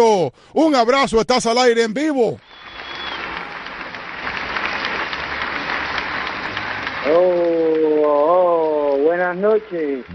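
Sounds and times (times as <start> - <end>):
speech: 0.0 - 2.5, 7.0 - 10.1
applause sound effect: 2.4 - 10.1.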